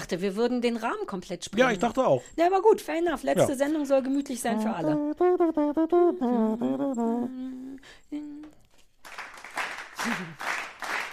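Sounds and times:
speech: 0.1s - 8.6s, 10.0s - 10.5s
sustained voiced tone: 4.5s - 7.8s
audience slow clap: 9.0s - 11.1s.

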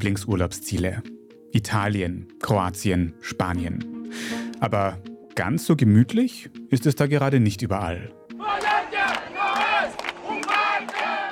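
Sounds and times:
speech: 0.0s - 8.2s
street protest crowd chanting: 8.4s - 11.3s.

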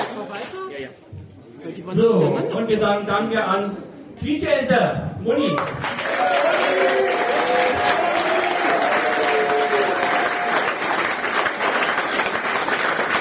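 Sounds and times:
speech: 0.2s - 7.1s
audience applause: 5.6s - 13.2s.

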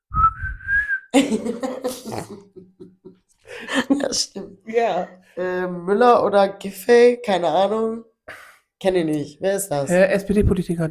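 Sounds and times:
whistling a pop song tune: 0.1s - 1.2s
coughing: 1.2s - 2.6s
speech: 1.2s - 2.6s, 4.1s - 10.8s
breathy laughter: 1.2s - 4.0s.

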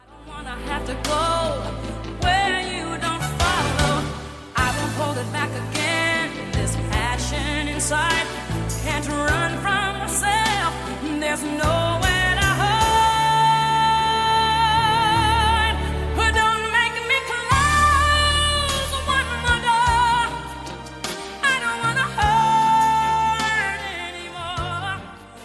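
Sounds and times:
pop power ballad recording: 0.0s - 25.4s.

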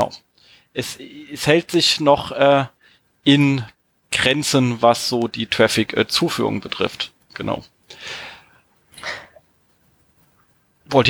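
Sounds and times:
speech: 0.0s - 8.3s, 10.9s - 11.0s
person breathing into the microphone: 7.9s - 9.4s.

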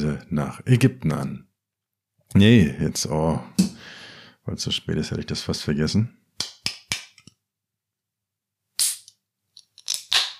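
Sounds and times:
speech: 0.0s - 1.5s, 2.3s - 3.8s, 4.5s - 6.2s
beer can being opened: 8.8s - 10.3s.

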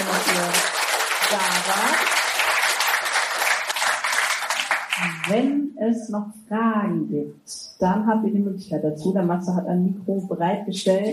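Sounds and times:
thunderous audience applause: 0.0s - 5.3s
speech: 5.3s - 11.1s.

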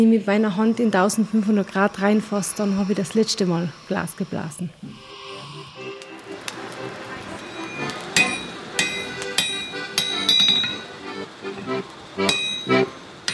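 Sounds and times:
speech: 0.0s - 5.0s
low rumble: 0.0s - 8.8s
blacksmith hammering metal at a forge: 7.3s - 11.0s, 12.3s - 13.3s.

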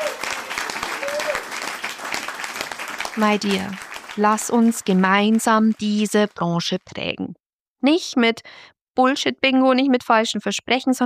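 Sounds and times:
applause: 0.0s - 6.0s
speech: 3.2s - 11.0s.

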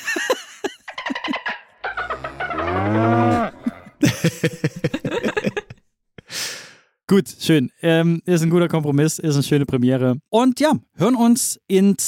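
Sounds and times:
laughter: 0.0s - 1.6s, 3.3s - 5.8s
cow mooing sound effect: 1.9s - 4.0s
speech: 7.1s - 12.0s.

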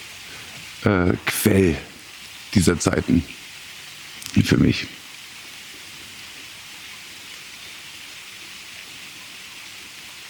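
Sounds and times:
rain setting in: 0.0s - 10.2s
speech: 0.8s - 1.9s, 2.5s - 3.4s, 4.3s - 5.0s.

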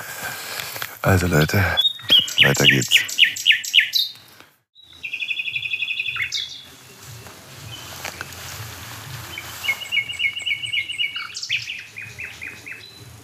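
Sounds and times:
speech: 1.0s - 3.1s
nightingale singing from a dead oak in a hedge near barns: 1.1s - 13.2s.

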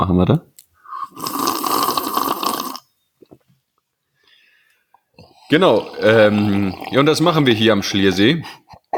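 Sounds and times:
speech: 0.0s - 0.5s, 5.5s - 8.9s
slurping hot tea: 0.9s - 2.9s, 5.2s - 7.1s.

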